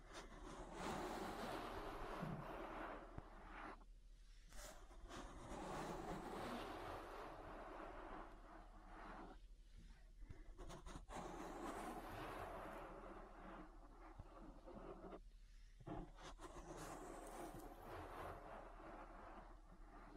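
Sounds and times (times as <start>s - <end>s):
ASMR ear massage rubbing and scratching: 0.0s - 20.1s.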